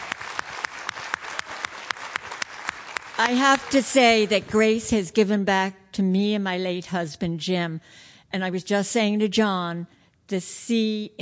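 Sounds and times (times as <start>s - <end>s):
audience applause: 0.0s - 4.0s
speech: 3.2s - 11.1s.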